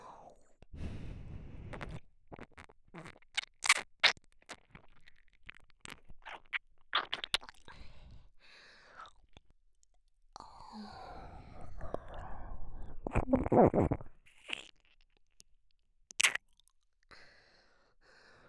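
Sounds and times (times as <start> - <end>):
ear licking sounds on the right: 1.7 - 7.8, 13.0 - 14.9, 16.1 - 16.4.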